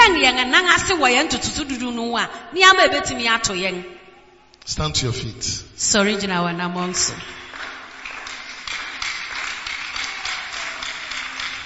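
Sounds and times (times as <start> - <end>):
speech: 0.3 - 4.0, 4.7 - 7.4
audience clapping hands: 7.1 - 11.6.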